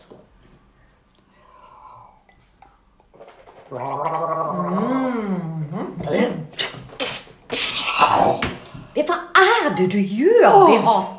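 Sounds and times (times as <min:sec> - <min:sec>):
person spitting into a pot: 0:02.2 - 0:08.4
speech: 0:03.7 - 0:06.4, 0:09.7 - 0:11.1.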